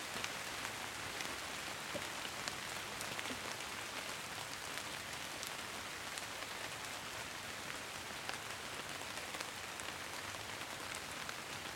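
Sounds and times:
gentle rain on beech and hazel tree leaves in the Cotswolds: 0.0 - 11.7.

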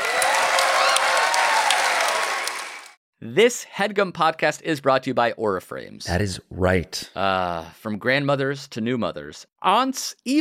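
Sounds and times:
audience applause: 0.0 - 3.0
speech: 3.3 - 10.4.

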